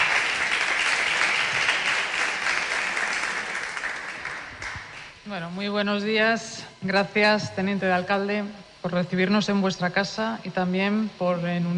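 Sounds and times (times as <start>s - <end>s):
audience applause: 0.0s - 5.1s
speech: 5.3s - 11.7s.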